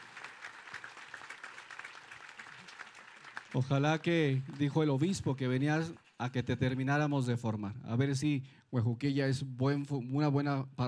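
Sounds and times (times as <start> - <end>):
welcoming applause from audience: 0.0 - 5.4
speech: 3.5 - 10.8.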